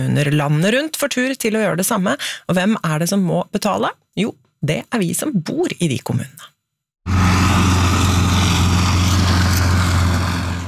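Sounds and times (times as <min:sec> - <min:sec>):
speech: 0:00.0 - 0:06.5
motorized push lawn mower engine running: 0:07.1 - 0:10.6.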